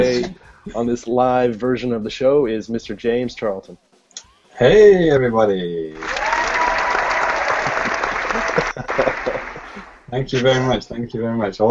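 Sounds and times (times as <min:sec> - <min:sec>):
laughter: 0:00.0 - 0:03.6, 0:07.3 - 0:11.6
speech: 0:00.1 - 0:03.9, 0:04.6 - 0:06.2, 0:08.8 - 0:09.5, 0:10.1 - 0:11.6
live audience applause and cheering at a show taping: 0:05.8 - 0:10.2.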